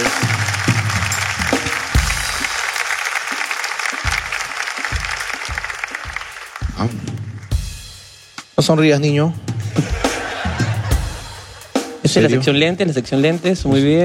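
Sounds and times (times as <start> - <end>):
audience applause: 0.0 - 7.8
speech: 8.6 - 10.0, 12.1 - 14.0
laughter: 9.6 - 12.6.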